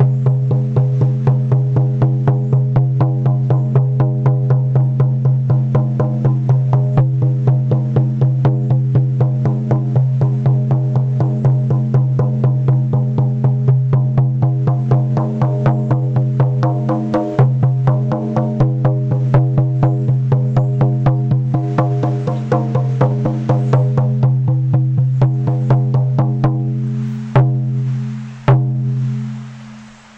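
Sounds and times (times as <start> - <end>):
drum: 0.0 - 29.4.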